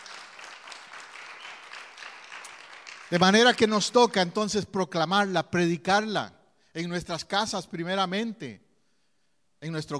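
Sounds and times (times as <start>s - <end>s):
applause from a church congregation: 0.0s - 4.3s
speech: 3.1s - 8.6s, 9.6s - 9.9s.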